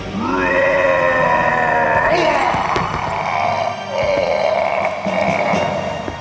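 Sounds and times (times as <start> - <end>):
giant dying sound effect: 0.1 - 6.1.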